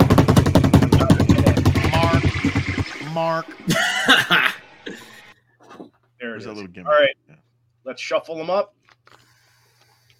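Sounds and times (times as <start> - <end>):
drum roll: 0.0 - 4.6
speech: 3.2 - 4.4, 6.5 - 7.2, 7.8 - 8.8
laughter: 3.6 - 5.3.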